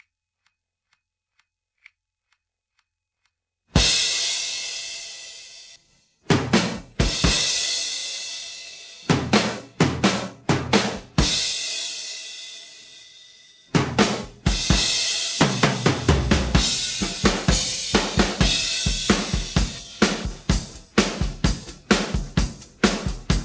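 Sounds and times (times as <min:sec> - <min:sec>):
drum pattern: 0:03.8 - 0:04.6, 0:06.3 - 0:08.2, 0:09.0 - 0:12.0, 0:13.7 - 0:23.4.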